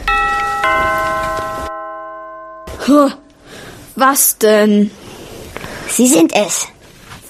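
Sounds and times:
doorbell chiming: 0.0s - 3.3s
speech: 2.9s - 3.2s, 4.0s - 5.0s, 5.9s - 6.8s.

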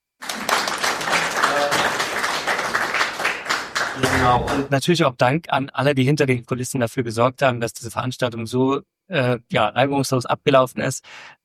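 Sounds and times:
audience applause: 0.2s - 4.7s
speech: 4.2s - 11.4s.

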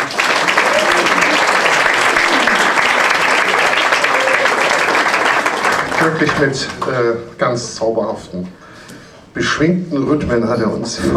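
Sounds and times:
audience applause: 0.0s - 7.1s
speech: 6.0s - 8.6s, 9.4s - 11.1s.

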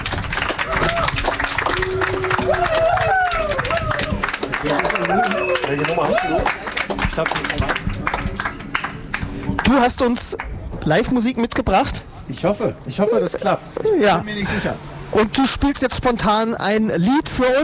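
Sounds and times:
audience applause: 0.0s - 9.9s
speech: 5.7s - 8.2s, 9.7s - 17.6s.

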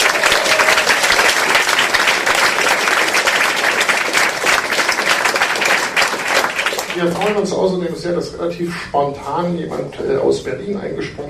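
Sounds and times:
crowd applauding: 0.0s - 7.4s
speech: 7.0s - 11.2s.

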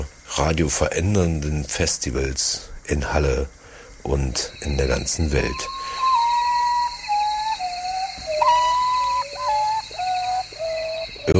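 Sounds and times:
speech: 0.4s - 5.8s
potoo bird call: 4.5s - 11.3s.

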